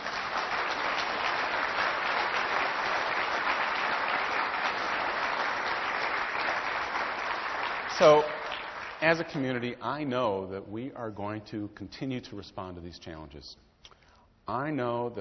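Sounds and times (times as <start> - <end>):
applause: 0.0 - 9.6
speech: 8.0 - 8.4, 9.0 - 13.6, 14.5 - 15.2.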